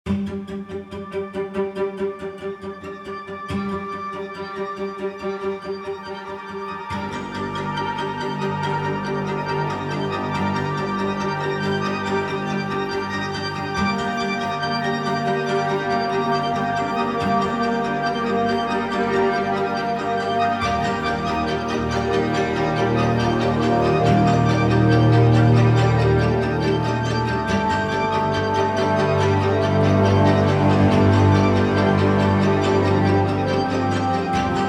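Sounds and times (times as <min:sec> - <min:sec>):
rhythmic texture: 0:03.4 - 0:34.6.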